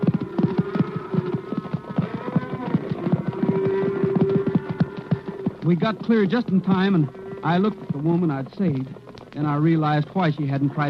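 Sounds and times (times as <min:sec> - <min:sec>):
galloping horse hooves during a stampede: 0:00.0 - 0:10.8
speech: 0:05.7 - 0:10.8.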